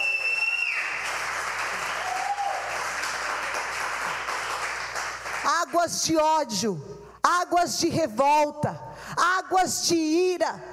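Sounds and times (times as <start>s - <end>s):
audience applause: 0.0s - 5.4s
speech: 5.7s - 10.7s.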